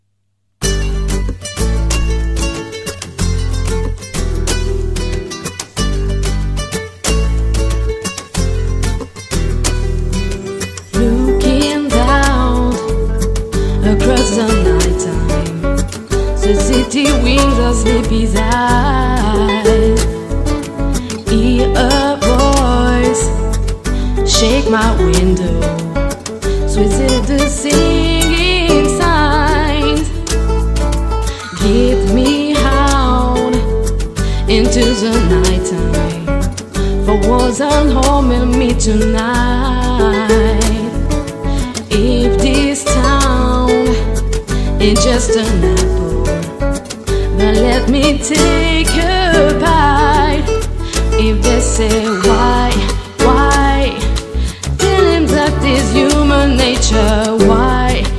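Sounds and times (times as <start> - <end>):
acoustic music: 0.6 - 58.1.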